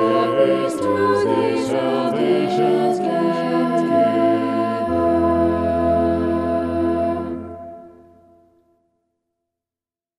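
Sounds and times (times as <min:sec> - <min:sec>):
polyphonic vocals: 0:00.0 - 0:08.0.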